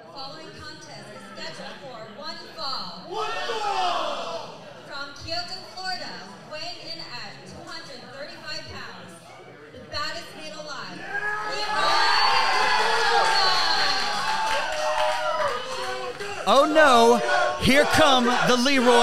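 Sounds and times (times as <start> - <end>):
speech: 0.2 - 4.3, 16.7 - 19.0
wrestling crowd chanting for a wrestler and cheering: 11.2 - 19.0.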